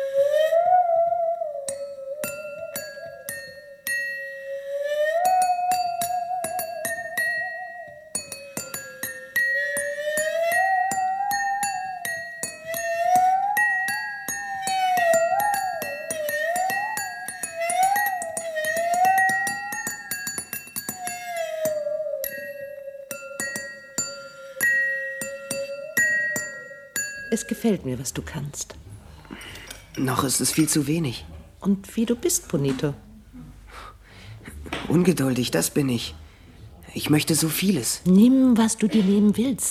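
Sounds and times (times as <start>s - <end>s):
musical saw playing: 0.0s - 27.7s
high bell-like pings: 1.7s - 4.6s, 5.2s - 27.7s
speech: 27.3s - 28.9s, 30.0s - 33.1s, 34.9s - 36.2s, 37.0s - 39.6s.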